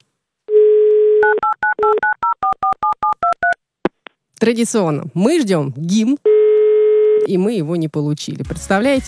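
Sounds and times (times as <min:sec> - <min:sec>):
telephone tone beep: 0:00.5 - 0:03.6, 0:06.3 - 0:07.3
speech: 0:04.4 - 0:06.3, 0:07.2 - 0:09.0.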